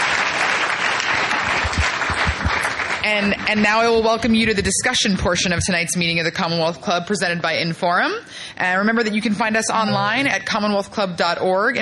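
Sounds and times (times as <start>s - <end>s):
audience applause: 0.0s - 3.7s
speech: 3.1s - 11.8s.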